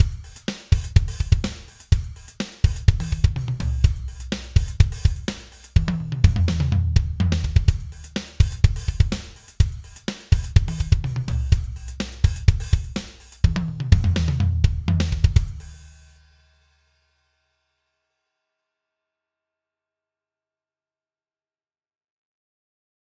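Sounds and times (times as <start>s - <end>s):
custom drum kit: 0.0s - 16.4s.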